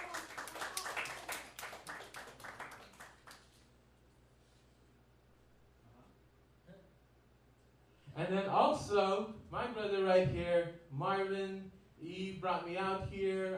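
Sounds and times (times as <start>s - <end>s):
audience applause: 0.0s - 3.6s
speech: 8.2s - 13.5s.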